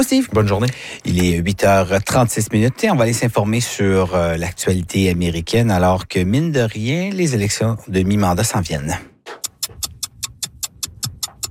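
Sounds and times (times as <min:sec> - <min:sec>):
speech: 0:00.0 - 0:09.1
clock ticking: 0:09.4 - 0:11.4.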